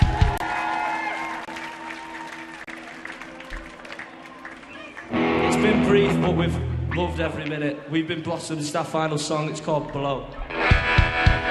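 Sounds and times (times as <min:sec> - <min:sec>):
faint cheers: 0:00.0 - 0:05.7
audience applause: 0:00.0 - 0:05.8
speech: 0:05.9 - 0:10.6.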